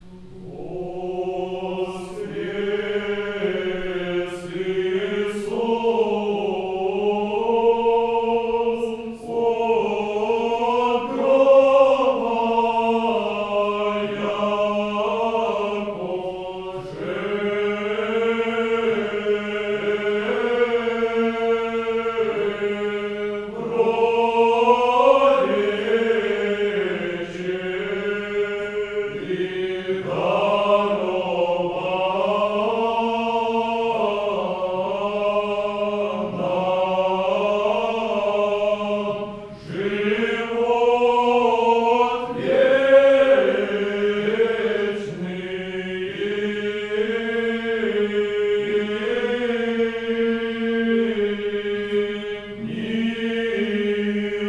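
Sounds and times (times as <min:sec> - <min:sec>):
Easter concert in the Annunciation Cathedral: 0:00.0 - 0:54.4.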